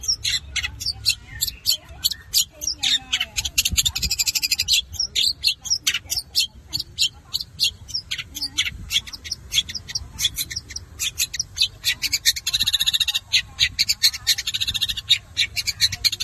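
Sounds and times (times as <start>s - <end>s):
Long-tailed shrike singing: 0.0s - 16.2s.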